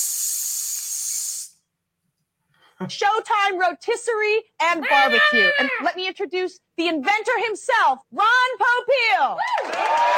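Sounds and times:
voice imitating spray tan hiss: 0:00.0 - 0:01.6
speech: 0:02.8 - 0:10.1.

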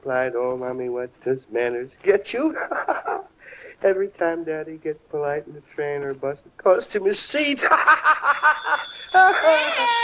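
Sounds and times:
speech: 0:00.0 - 0:10.0
laughter: 0:02.5 - 0:03.3, 0:07.6 - 0:10.0
telephone ringing: 0:07.9 - 0:10.0.

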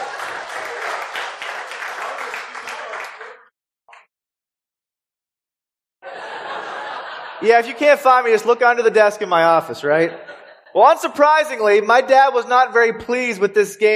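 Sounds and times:
audience applause: 0:00.0 - 0:03.5
laughter: 0:06.0 - 0:08.0, 0:09.9 - 0:11.2
speech: 0:07.4 - 0:13.9.

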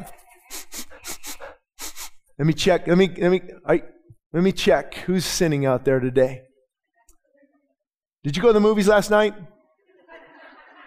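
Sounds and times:
person sniffing loudly and theatrically: 0:00.0 - 0:02.4
speech: 0:02.4 - 0:06.5, 0:08.2 - 0:09.5
laughter: 0:09.8 - 0:10.8.

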